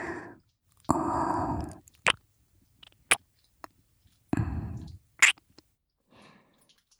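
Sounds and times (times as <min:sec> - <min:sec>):
ASMR ear licking sounds: 0:00.8 - 0:05.6.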